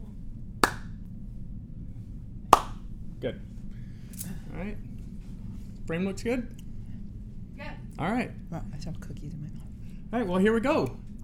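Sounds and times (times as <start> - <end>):
low hum: 0.0 - 11.2
single hand clap for syncing: 0.6 - 0.9, 2.6 - 2.8
speech: 3.2 - 3.5, 4.2 - 4.9, 5.9 - 6.6, 8.0 - 11.0.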